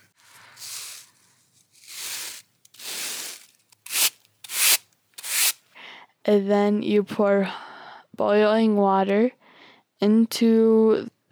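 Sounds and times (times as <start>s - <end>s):
ground corn swept into a basket: 0.0s - 5.6s
speech: 6.3s - 7.6s, 8.2s - 9.4s, 10.0s - 11.3s.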